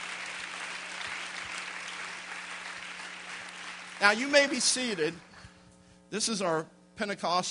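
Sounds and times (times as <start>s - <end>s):
audience clapping hands: 0.0s - 5.3s
speech: 4.0s - 5.3s, 6.1s - 7.4s.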